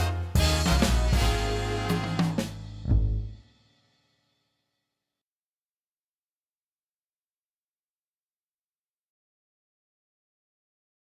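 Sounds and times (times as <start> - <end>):
drum kit playing for an exam: 0.0 - 3.4.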